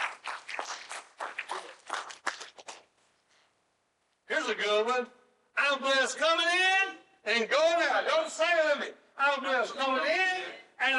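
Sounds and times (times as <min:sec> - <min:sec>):
audience hand clapping: 0:00.0 - 0:02.8
speech: 0:04.5 - 0:10.9.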